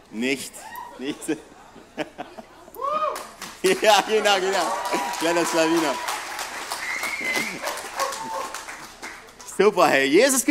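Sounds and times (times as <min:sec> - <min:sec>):
speech: 0:00.1 - 0:02.5, 0:03.6 - 0:06.1, 0:09.6 - 0:10.4
laughter: 0:00.9 - 0:02.7, 0:03.6 - 0:05.6, 0:07.1 - 0:08.5
applause: 0:03.2 - 0:09.9.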